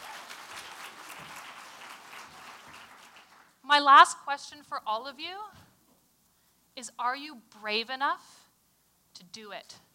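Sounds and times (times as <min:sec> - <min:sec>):
audience applause: 0:00.0 - 0:03.6
speech: 0:03.7 - 0:05.6, 0:06.8 - 0:08.4, 0:09.2 - 0:09.9.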